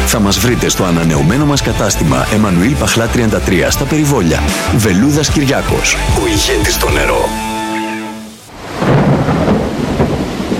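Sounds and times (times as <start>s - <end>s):
speech: 0.1s - 7.5s
heavy rain: 4.5s - 10.5s
thunder: 8.5s - 10.5s.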